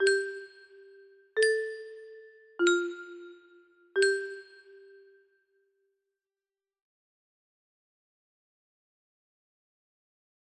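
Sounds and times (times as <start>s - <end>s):
music box melody: 0.0s - 5.1s.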